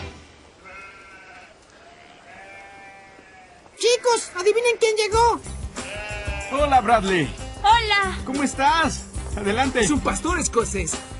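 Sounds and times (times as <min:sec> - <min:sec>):
goat bleating: 0:00.6 - 0:08.0
speech: 0:04.1 - 0:05.6, 0:06.5 - 0:11.1.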